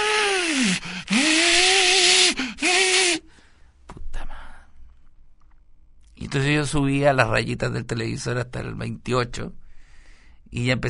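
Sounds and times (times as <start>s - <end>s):
vacuum cleaner running at night: 0.0s - 3.2s
speech: 6.3s - 9.6s, 10.5s - 10.8s.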